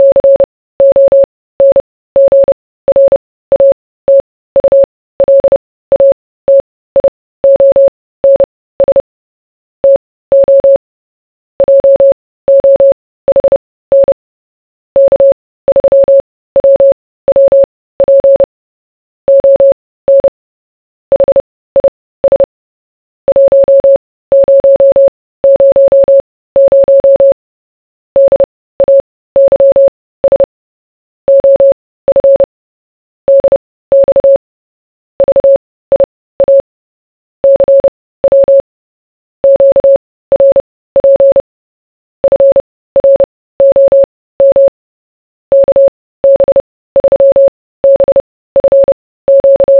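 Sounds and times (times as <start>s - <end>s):
morse code beeps: 0.0s - 9.0s, 9.8s - 10.8s, 11.6s - 14.2s, 15.0s - 18.5s, 19.3s - 20.3s, 21.1s - 22.5s, 23.3s - 27.4s, 28.2s - 30.5s, 31.3s - 32.5s, 33.3s - 34.4s, 35.2s - 36.6s, 37.4s - 38.6s, 39.4s - 41.4s, 42.2s - 44.7s, 45.5s - 49.7s.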